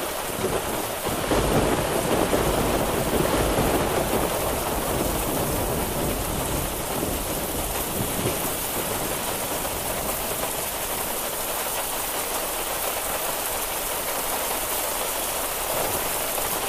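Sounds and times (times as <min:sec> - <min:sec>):
rain pouring in a thunderstorm: 0:00.0 - 0:16.6
thunder rumbling: 0:00.3 - 0:11.2.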